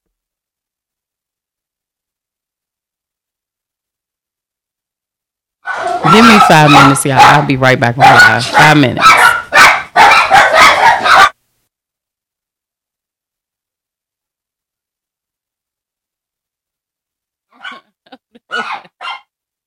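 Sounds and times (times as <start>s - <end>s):
dogs barking: 5.6s - 11.4s, 17.5s - 19.3s
speech: 6.0s - 9.2s.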